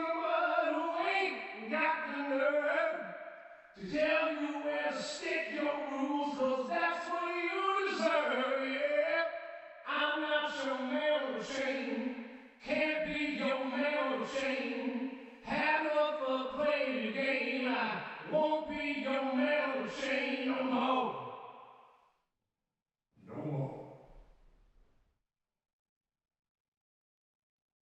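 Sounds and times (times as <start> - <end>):
male vocal wet with ensemble reverb: 0.0 - 21.3.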